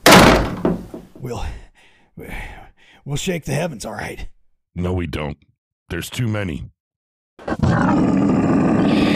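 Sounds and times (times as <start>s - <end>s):
door slamming shut against a horde of demons: 0.0s - 1.1s
soft knocks and thumps: 0.0s - 1.2s
speech: 1.2s - 6.8s, 7.4s - 9.0s.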